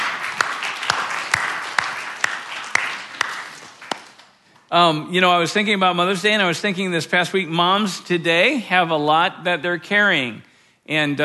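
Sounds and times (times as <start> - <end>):
round of applause: 0.0 - 4.4
speech: 4.7 - 11.2.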